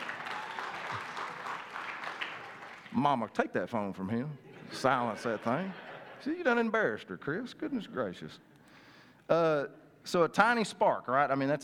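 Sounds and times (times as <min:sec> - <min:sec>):
audience applause: 0:00.0 - 0:03.0
speech: 0:03.0 - 0:08.5, 0:09.3 - 0:11.6
laughter: 0:04.2 - 0:06.7.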